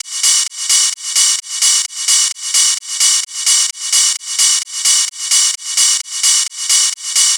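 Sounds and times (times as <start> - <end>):
ride cymbal techno loop at 130 bpm: 0.0 - 7.3.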